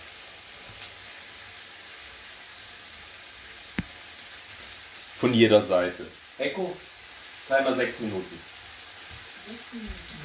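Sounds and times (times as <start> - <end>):
chicken breasts frying in a pan: 0.0 - 10.2
speech: 5.2 - 6.9, 7.5 - 8.5, 9.5 - 10.2.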